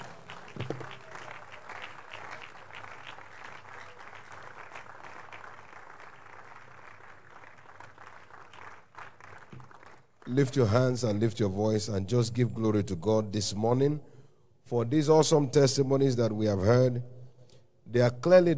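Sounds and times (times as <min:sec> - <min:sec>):
audience clapping in celebration: 0:00.0 - 0:11.2
speech: 0:10.4 - 0:14.1, 0:14.7 - 0:17.1, 0:17.9 - 0:18.5.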